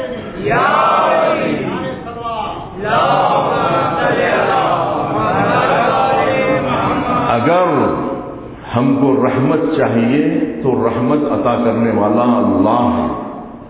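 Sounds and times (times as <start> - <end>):
large crowd chanting at a religious gathering: 0.0 - 8.4
speech: 0.4 - 0.9, 8.8 - 13.3.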